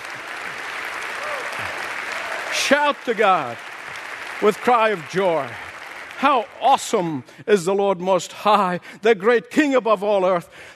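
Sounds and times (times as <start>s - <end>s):
audience clapping hands: 0.0s - 7.8s
speech: 2.6s - 3.7s, 4.4s - 5.6s, 6.2s - 10.7s.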